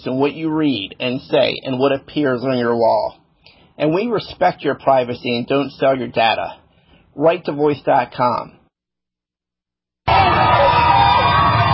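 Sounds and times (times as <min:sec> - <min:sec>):
speech: 0:00.0 - 0:03.2, 0:03.8 - 0:06.6, 0:07.2 - 0:08.6
crowd cheering Pope Francis leaving Dublin Castle: 0:10.1 - 0:11.7.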